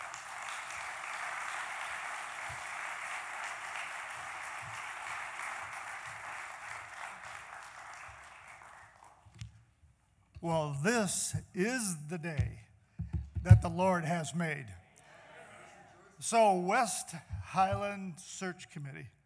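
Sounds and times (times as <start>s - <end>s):
audience applause: 0.0s - 9.2s
speech: 10.4s - 12.6s, 13.4s - 14.8s, 16.2s - 19.2s.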